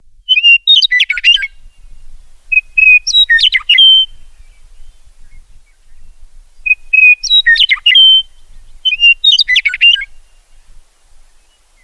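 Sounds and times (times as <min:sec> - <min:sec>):
meadowlark singing: 0:00.0 - 0:11.8.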